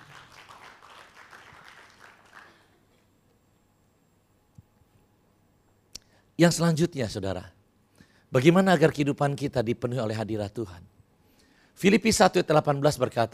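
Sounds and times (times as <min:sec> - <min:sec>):
audience clapping hands: 0:00.0 - 0:03.0
speech: 0:06.4 - 0:07.6, 0:08.3 - 0:10.9, 0:11.8 - 0:13.3.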